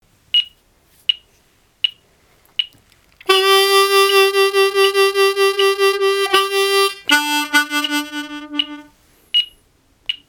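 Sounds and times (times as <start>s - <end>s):
simple musical turnaround: 3.3s - 8.9s.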